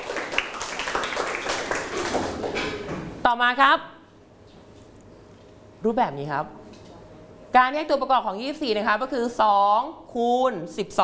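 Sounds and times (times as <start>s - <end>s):
classroom of children clapping for a classmate: 0.0s - 2.9s
speech: 3.3s - 3.9s, 5.8s - 6.6s, 7.5s - 11.0s.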